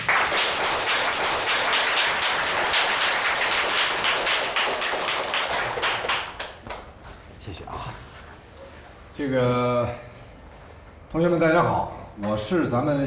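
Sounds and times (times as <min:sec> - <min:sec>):
classroom applause: 0:00.0 - 0:06.9
speech: 0:09.2 - 0:10.1, 0:11.1 - 0:13.0.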